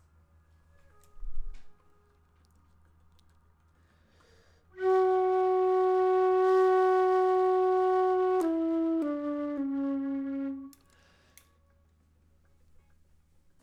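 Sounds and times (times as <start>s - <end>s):
flute: 0.0s - 2.8s, 4.6s - 11.8s.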